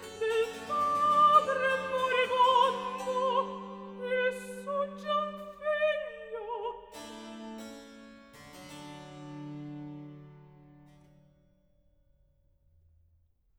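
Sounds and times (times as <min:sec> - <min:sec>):
cantata recitative: 0:00.0 - 0:07.2.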